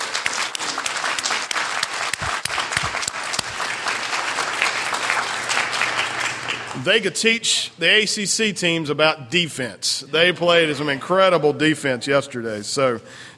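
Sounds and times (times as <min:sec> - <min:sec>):
audience applause: 0:00.0 - 0:06.8
speech: 0:06.8 - 0:13.3.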